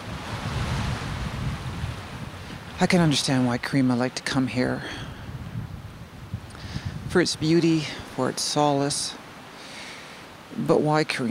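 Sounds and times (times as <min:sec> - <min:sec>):
wind rushing: 0:00.0 - 0:08.4
waves lapping on a wide lake shore: 0:00.0 - 0:11.2
speech: 0:02.8 - 0:05.1, 0:07.1 - 0:09.2, 0:10.6 - 0:11.2.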